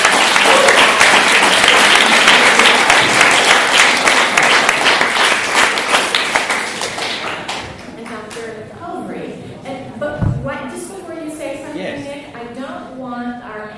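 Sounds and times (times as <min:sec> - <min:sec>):
audience applause: 0:00.0 - 0:08.0.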